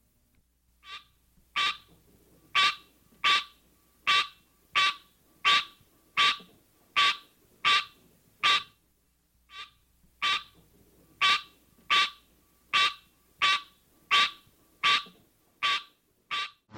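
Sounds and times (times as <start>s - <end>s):
green tree frog Hyla Cinerea calling: 0.8s - 1.9s, 2.5s - 8.8s, 9.5s - 10.6s, 11.2s - 16.6s.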